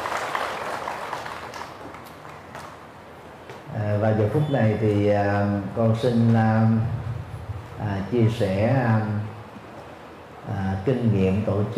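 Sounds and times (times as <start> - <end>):
audience applause: 0.0 - 2.8
speech: 4.0 - 7.0, 7.8 - 9.4, 10.5 - 11.7.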